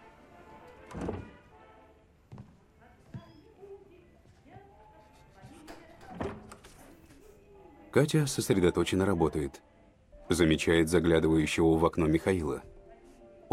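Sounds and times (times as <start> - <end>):
door shutting with a heavy, dull thunk: 0.9 - 1.4
speech: 7.9 - 12.8.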